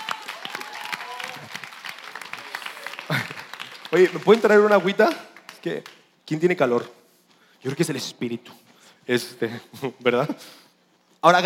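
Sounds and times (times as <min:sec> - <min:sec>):
audience applause: 0:00.0 - 0:06.0
speech: 0:03.9 - 0:07.0, 0:07.6 - 0:10.6, 0:11.2 - 0:11.4.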